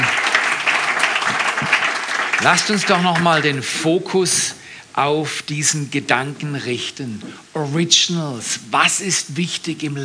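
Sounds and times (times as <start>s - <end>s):
audience applause for returning band: 0.0s - 3.8s
speech: 2.4s - 10.0s.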